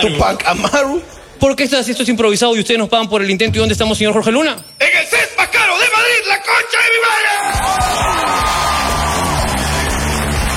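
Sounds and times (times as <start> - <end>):
speech: 0.0 - 8.6
audience at a live comedy show cheering and yelling: 6.9 - 10.5.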